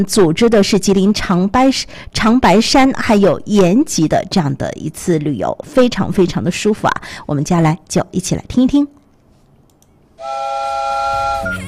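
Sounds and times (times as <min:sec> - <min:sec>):
speech: 0:00.0 - 0:09.0
train whistle as the train is about to depart: 0:10.2 - 0:11.6.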